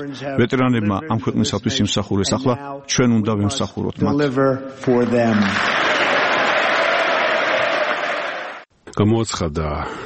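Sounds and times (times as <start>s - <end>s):
speech: 0.0s - 5.9s, 9.0s - 10.0s
Members of Congress clapping and crowd noise in ovation for the US president: 5.0s - 8.7s.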